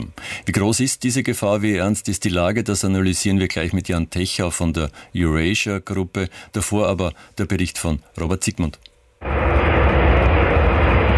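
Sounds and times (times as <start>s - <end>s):
speech: 0.0s - 8.9s
US military aircraft engine roar landing on a runway in Riga: 9.2s - 11.1s.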